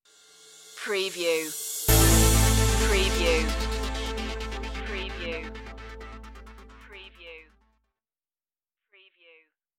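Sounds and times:
disco stinger: 1.5 - 7.6.

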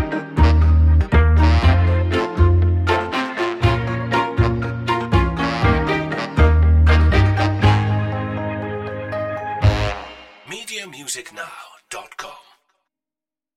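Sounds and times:
funny mystery music: 0.0 - 10.5.

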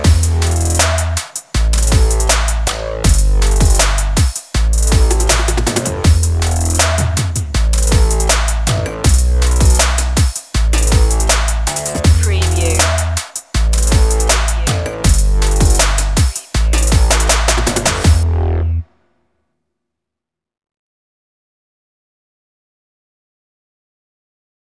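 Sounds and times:
drums: 0.0 - 18.2
bass: 0.0 - 18.9.

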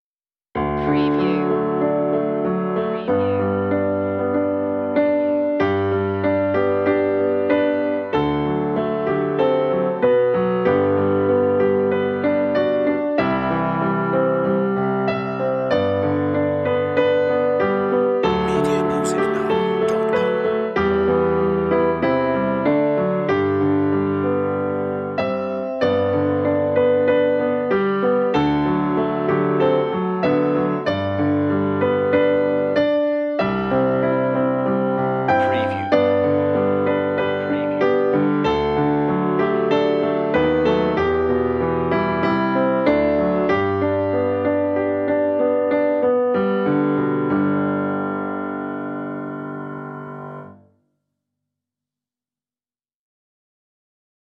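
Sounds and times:
reverberant piano piece at 95 bpm: 0.6 - 50.6.

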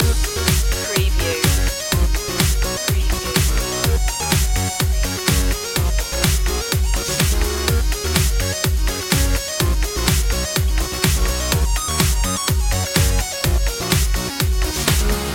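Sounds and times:
music loop: 0.0 - 15.3.

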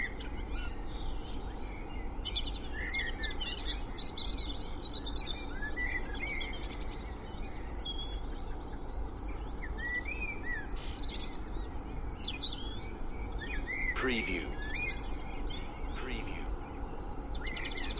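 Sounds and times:
spring dawn chorus birdsong in Cheshire UK: 0.0 - 17.9
distant traffic noise in Cheshire UK: 13.6 - 17.2.

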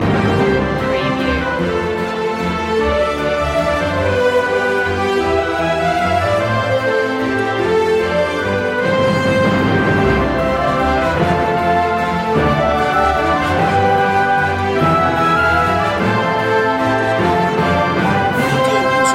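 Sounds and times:
orchestral Christmas carol loop: 0.0 - 19.1.

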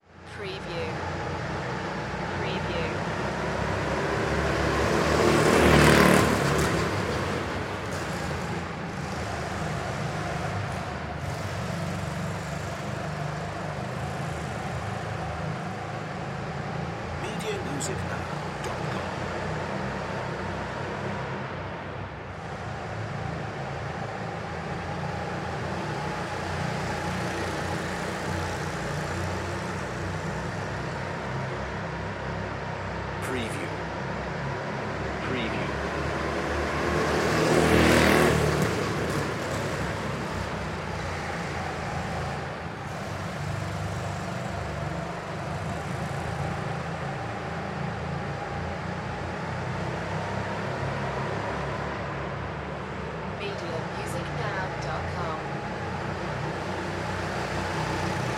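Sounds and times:
go-kart driving around: 0.0 - 58.3.

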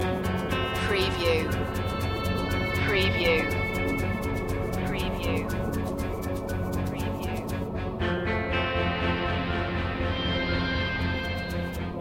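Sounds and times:
spy tension music: 0.0 - 11.9.

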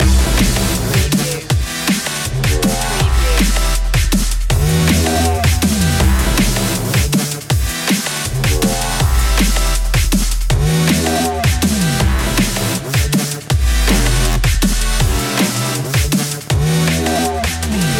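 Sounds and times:
rising music loop: 0.0 - 17.9.

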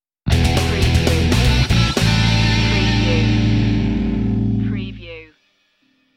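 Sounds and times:
rock music sting: 0.3 - 4.6.

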